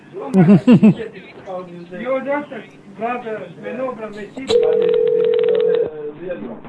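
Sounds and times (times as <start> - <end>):
people talking: 0.0 - 6.6
laughter: 0.3 - 1.2
telephone off-hook tone: 4.5 - 6.1.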